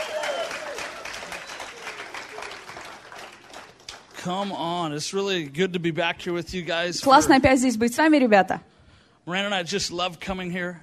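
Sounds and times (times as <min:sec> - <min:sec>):
crowd applauding: 0:00.0 - 0:04.7
speech: 0:04.2 - 0:08.7, 0:09.3 - 0:10.8.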